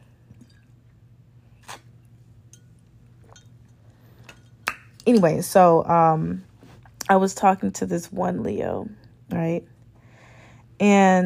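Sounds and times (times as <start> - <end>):
glass clinking: 2.4 - 5.2
speech: 5.0 - 6.5, 7.1 - 9.7, 10.8 - 11.2.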